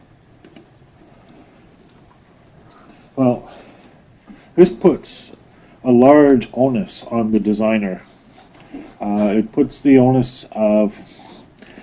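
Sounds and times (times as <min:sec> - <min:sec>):
faint steady hiss: 0:00.0 - 0:11.8
soft clicks of a presentation slide being advanced: 0:00.4 - 0:00.7
speech: 0:03.2 - 0:03.6, 0:04.6 - 0:08.1, 0:09.0 - 0:11.1.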